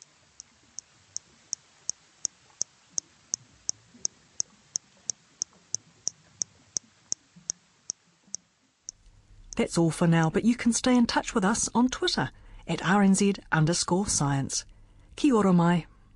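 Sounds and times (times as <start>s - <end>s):
Hector's dolphin clicks slowed down: 0.0s - 7.6s
speech: 9.6s - 15.9s.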